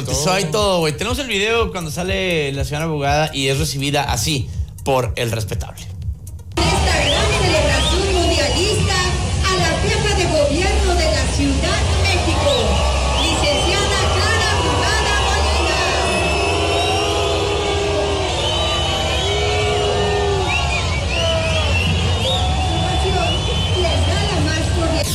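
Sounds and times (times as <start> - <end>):
speech: 0.0 - 6.0
crowd booing: 6.6 - 9.7, 10.6 - 25.0.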